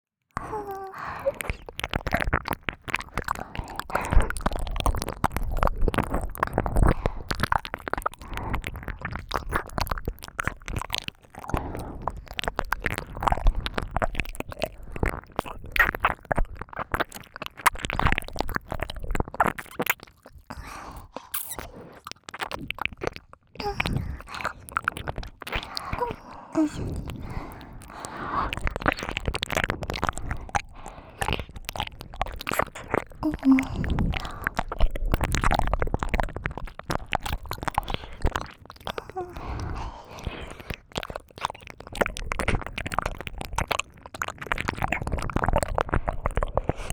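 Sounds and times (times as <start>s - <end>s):
licking of both ears: 0.4s - 46.9s.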